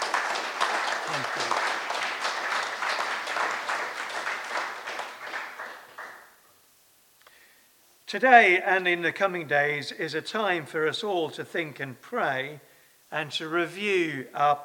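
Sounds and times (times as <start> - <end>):
audience applause: 0.0 - 6.4
speech: 8.1 - 14.6.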